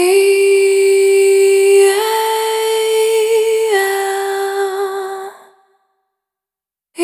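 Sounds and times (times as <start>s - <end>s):
single voice melodic vocal loop: 0.0s - 5.6s.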